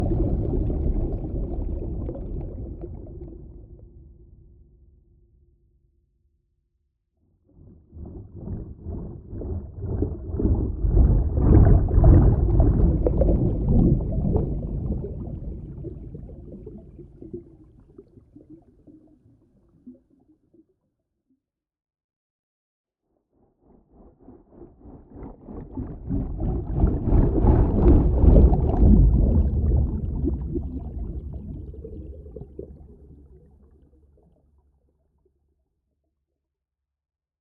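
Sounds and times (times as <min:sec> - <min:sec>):
designed underwater propeller whoosh: 0:00.0 - 0:03.4, 0:08.2 - 0:17.5, 0:24.5 - 0:33.2.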